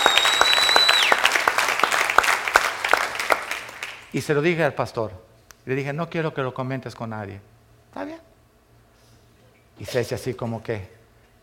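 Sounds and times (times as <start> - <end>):
high whistling tone: 0.0 - 1.2
audience clapping: 0.0 - 4.1
speech: 4.1 - 8.1, 9.8 - 11.0.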